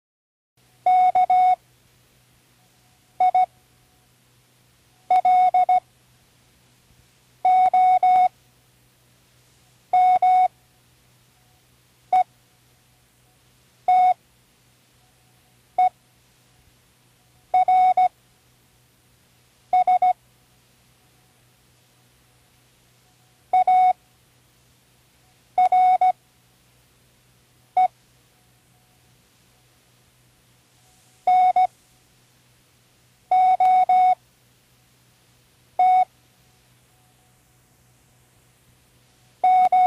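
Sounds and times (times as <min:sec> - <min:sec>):
Morse code spelling words: 0:00.9 - 0:01.6, 0:03.2 - 0:03.5, 0:05.1 - 0:05.8, 0:07.4 - 0:08.3, 0:09.9 - 0:10.5, 0:13.9 - 0:14.2, 0:17.6 - 0:18.1, 0:19.8 - 0:20.2, 0:23.1 - 0:24.0, 0:25.6 - 0:26.2, 0:31.3 - 0:31.7, 0:33.3 - 0:34.2, 0:35.8 - 0:36.1, 0:39.4 - 0:39.8.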